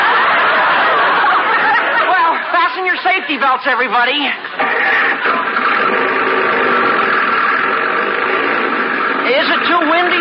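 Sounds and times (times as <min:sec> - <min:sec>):
laughter: 0:00.0 - 0:07.8
speech: 0:03.3 - 0:04.6, 0:09.3 - 0:10.1
roadster car engine running: 0:03.8 - 0:10.1.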